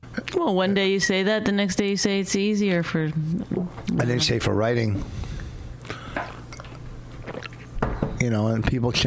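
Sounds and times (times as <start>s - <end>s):
speech: 0.4s - 5.2s, 8.2s - 9.0s
person gulping a drink: 5.8s - 7.6s.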